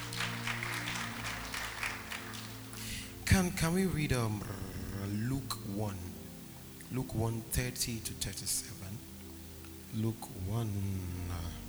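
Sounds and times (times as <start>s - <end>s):
audience clapping: 0.0s - 3.1s
speech: 3.3s - 6.2s, 6.9s - 9.1s, 9.9s - 11.6s.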